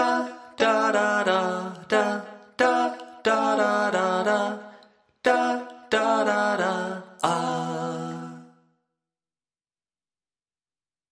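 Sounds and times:
vocals: 0.0 - 8.9.

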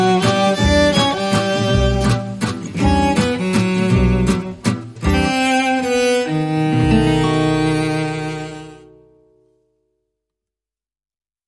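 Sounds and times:
bal musette waltz: 0.0 - 9.1.

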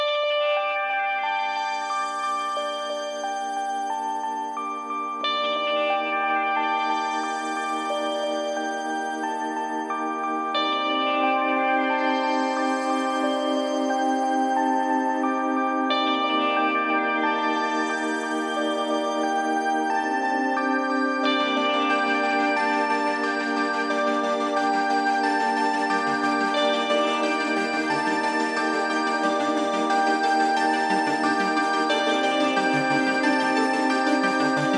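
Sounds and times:
synths: 0.1 - 34.7.

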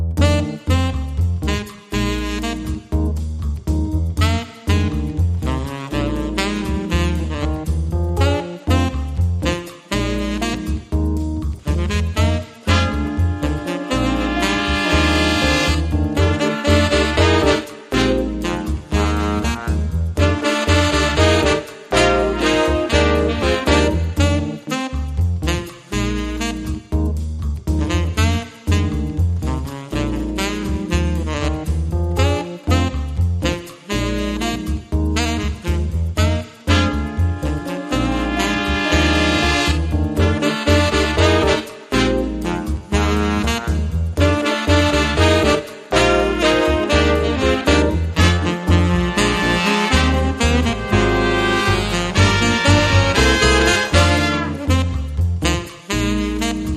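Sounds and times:
drums underscore: 0.2 - 56.7.

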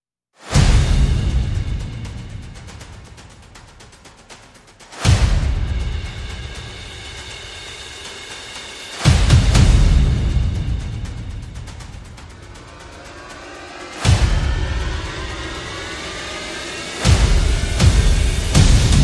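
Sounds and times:
percussion: 0.4 - 19.0
sound effects: 11.7 - 19.0.

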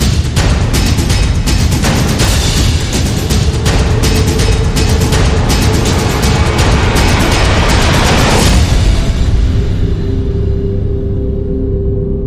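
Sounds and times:
drums: 0.0 - 12.1.

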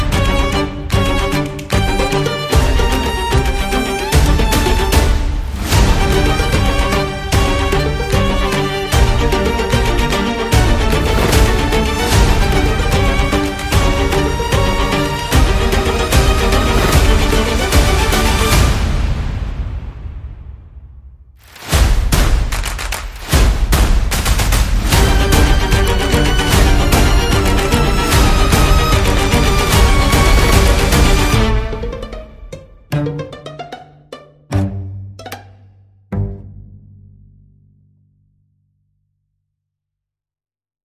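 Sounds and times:
string instruments: 0.0 - 20.2, 21.4 - 37.1
percussion: 0.0 - 36.7
sound effects: 4.4 - 36.5.

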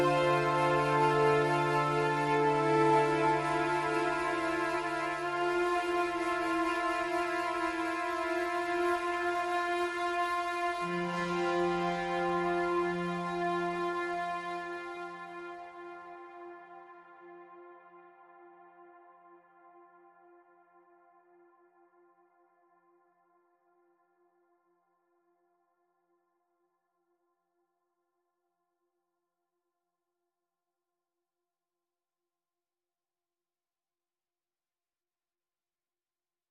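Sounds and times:
tuba: 0.0 - 9.4, 10.7 - 15.9
flute: 0.0 - 21.7.

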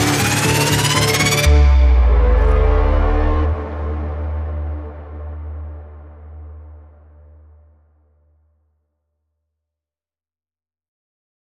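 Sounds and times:
pulsing braam: 0.0 - 7.7.

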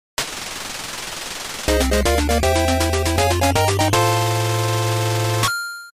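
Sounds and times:
gain a level jingle: 1.7 - 5.9.

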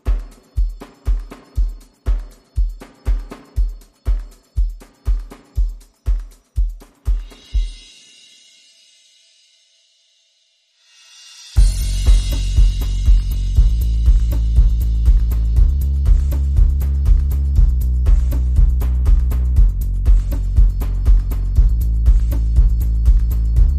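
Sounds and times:
drums: 0.0 - 9.8, 10.8 - 23.7
bass: 11.6 - 23.7.

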